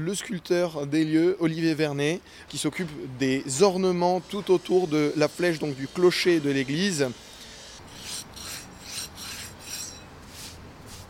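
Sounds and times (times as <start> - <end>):
speech: 0.0 - 7.3
rasp filing a stone surface: 4.2 - 11.0.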